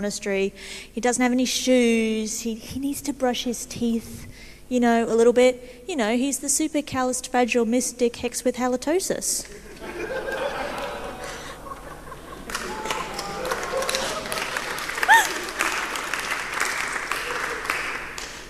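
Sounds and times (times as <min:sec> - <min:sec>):
speech: 0:00.0 - 0:10.3
chuckles: 0:09.7 - 0:15.9
audience applause: 0:09.9 - 0:18.4.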